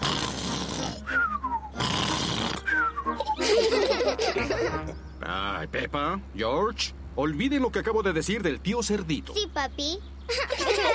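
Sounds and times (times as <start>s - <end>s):
person imitating loud snoring: 0.0s - 1.1s, 1.7s - 2.7s
laughter: 3.2s - 5.0s, 10.3s - 10.9s
speech: 4.8s - 10.9s.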